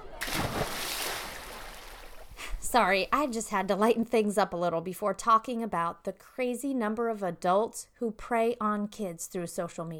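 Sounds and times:
splash of someone jumping into a swimming pool: 0.0 - 2.4
churning sloshing pool water: 0.0 - 3.3
speech: 2.7 - 9.9.

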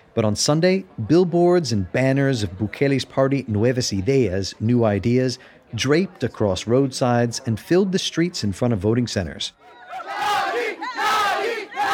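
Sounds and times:
speech: 0.2 - 10.2
Bukele supporters cheering outside polling stations on election day: 9.6 - 11.9.

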